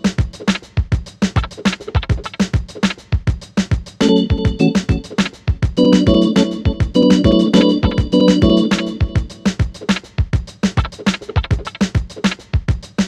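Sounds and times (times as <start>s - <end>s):
hip hop beat: 0.0s - 3.1s, 4.0s - 12.5s
organ with delay effect: 4.0s - 9.8s.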